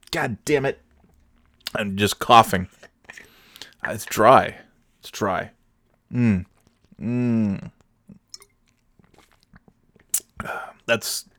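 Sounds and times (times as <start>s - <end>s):
speech: 0.1s - 0.8s, 1.7s - 3.2s, 3.8s - 7.8s, 10.4s - 11.3s
drinking water: 2.7s - 4.4s, 7.7s - 11.3s.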